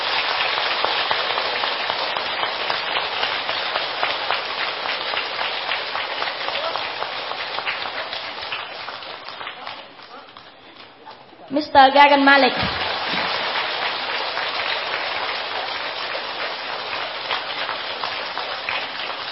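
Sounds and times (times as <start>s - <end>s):
audience applause: 0.0s - 11.1s, 12.0s - 19.3s
speech: 11.8s - 12.8s.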